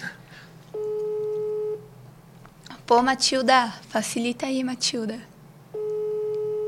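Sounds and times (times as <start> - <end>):
unanswered phone call ringing: 0.7 - 1.9, 5.7 - 6.6
speech: 2.9 - 5.3.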